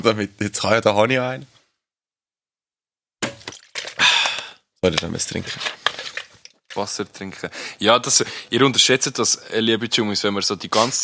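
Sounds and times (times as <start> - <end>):
speech: 0.0 - 1.5, 4.8 - 5.8, 6.8 - 11.0
plastic bottle cap twisting open: 3.4 - 6.9.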